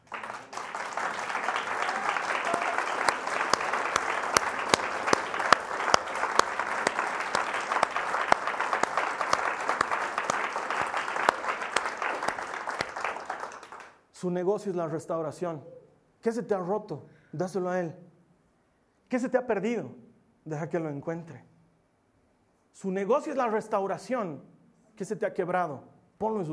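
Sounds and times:
audience applause: 0.0 - 14.0
speech: 14.2 - 18.0, 19.1 - 21.5, 22.8 - 26.5.

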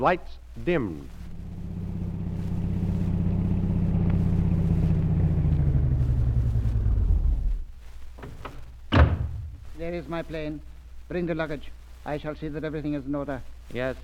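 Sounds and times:
speech: 0.0 - 1.2, 9.8 - 14.0
taxi engine rumbling and idling: 0.8 - 10.0
brief thump: 8.2 - 9.8.

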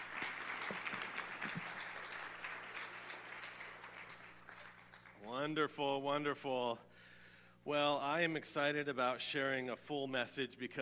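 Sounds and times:
audience crowd clapping: 0.0 - 5.4
speech: 5.3 - 6.9, 7.6 - 10.8.

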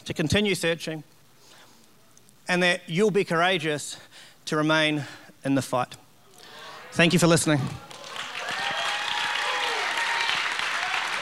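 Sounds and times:
speech: 0.0 - 1.2, 2.5 - 6.0, 6.9 - 7.9
cheering voices: 6.4 - 11.2
crowd applauding: 6.5 - 11.2.

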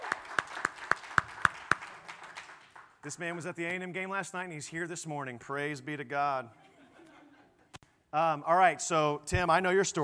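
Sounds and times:
audience hand clapping: 0.0 - 3.2
speech: 3.0 - 6.6, 8.1 - 10.0
laughter: 6.5 - 7.7.

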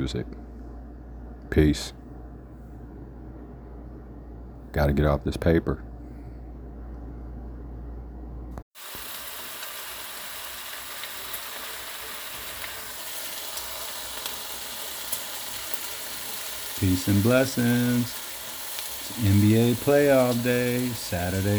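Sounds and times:
speech: 0.0 - 0.4, 1.5 - 2.0, 4.7 - 5.9, 16.8 - 18.2, 19.1 - 21.5
bacon sizzling: 8.8 - 21.5.

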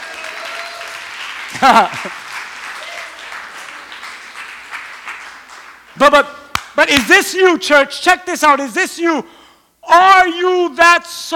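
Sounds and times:
audience clapping: 0.0 - 7.1
laughter: 1.5 - 2.3
speech: 1.6 - 2.2, 6.0 - 11.3.

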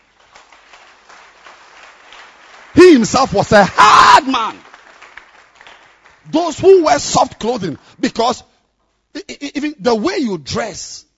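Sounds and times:
audience clapping: 0.0 - 8.5
speech: 2.8 - 4.7, 6.3 - 8.5, 9.2 - 11.1.

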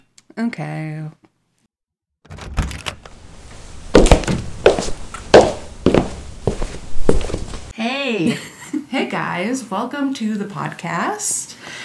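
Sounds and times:
speech: 0.4 - 1.2, 7.8 - 11.8
staged footsteps sound effect thudding and scuffing: 3.9 - 7.7.

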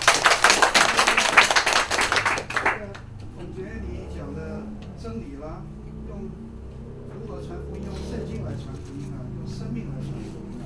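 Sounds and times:
crowd applause: 0.0 - 3.0.

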